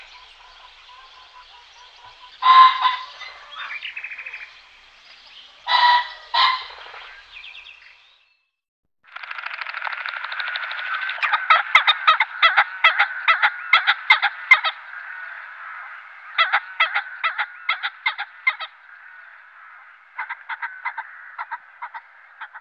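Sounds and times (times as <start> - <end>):
pheasant cackling: 0.0 - 8.0, 11.2 - 22.5.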